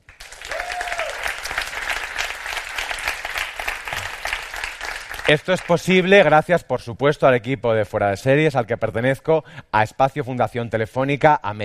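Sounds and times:
audience applause: 0:00.0 - 0:05.9
speech: 0:05.3 - 0:11.6.

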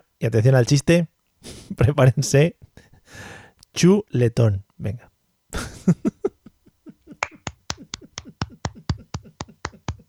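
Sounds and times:
speech: 0:00.2 - 0:06.1
laughter: 0:05.6 - 0:10.0
one person clapping alone: 0:07.2 - 0:10.0.

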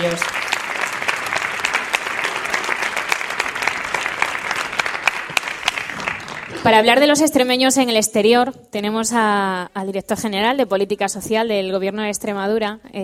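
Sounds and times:
speech: 0:00.0 - 0:00.4, 0:06.6 - 0:13.0
audience applause: 0:00.0 - 0:07.0.

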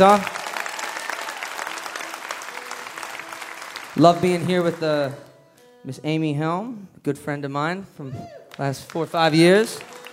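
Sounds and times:
speech: 0:00.0 - 0:00.3, 0:04.0 - 0:05.2, 0:05.8 - 0:10.0
faint cheers: 0:00.0 - 0:02.6, 0:08.0 - 0:08.7
audience applause: 0:00.0 - 0:05.2, 0:08.4 - 0:10.1.

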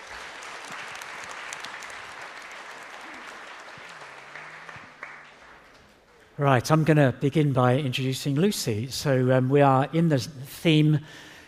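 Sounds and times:
church congregation clapping to welcome a speaker: 0:00.0 - 0:06.5
speech: 0:06.4 - 0:11.3.

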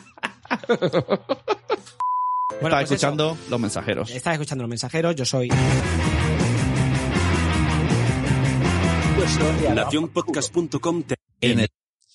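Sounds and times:
laughter: 0:00.0 - 0:02.0
speech: 0:00.6 - 0:06.6, 0:09.3 - 0:11.8
podcast intro music with thick low beat and full harmonies: 0:05.6 - 0:10.6.

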